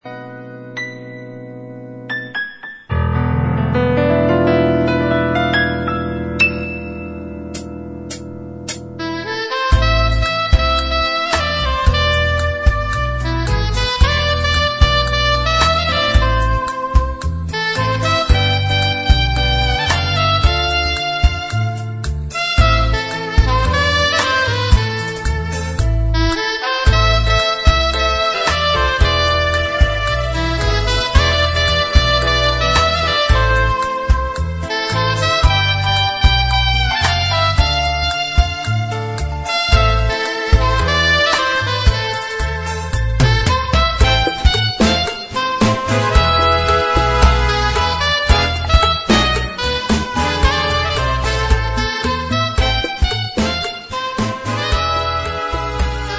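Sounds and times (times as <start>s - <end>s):
saxophone playing tango: 3.6s - 56.1s.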